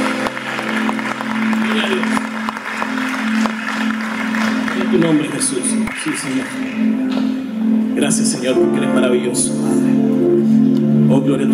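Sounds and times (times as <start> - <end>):
audience applause: 0.0 - 7.0
sustained low instrumental tone: 0.0 - 11.5
speech: 5.1 - 7.4, 8.0 - 10.1, 11.1 - 11.5.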